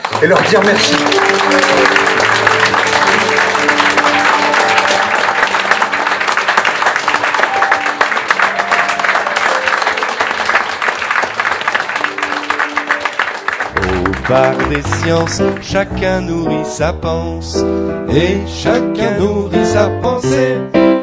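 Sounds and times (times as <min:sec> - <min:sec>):
audience applause: 0:00.0 - 0:15.7
speech: 0:00.2 - 0:02.7, 0:14.3 - 0:20.9.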